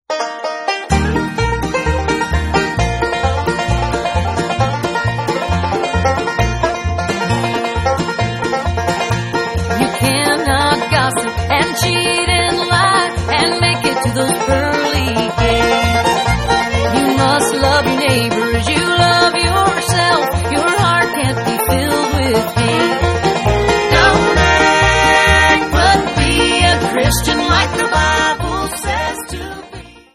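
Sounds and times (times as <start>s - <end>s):
bluegrass music: 0.1s - 30.1s.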